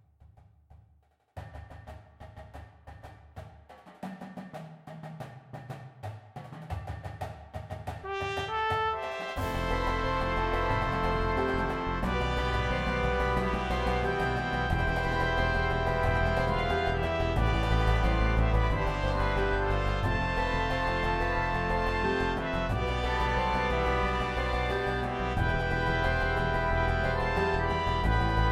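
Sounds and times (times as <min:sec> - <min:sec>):
marching band playing a fan arrangement: 0:08.0 - 0:28.4.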